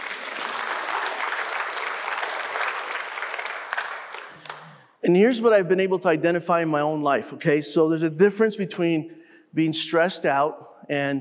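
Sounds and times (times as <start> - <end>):
audience clapping: 0.0 - 5.0
speech: 5.0 - 11.1.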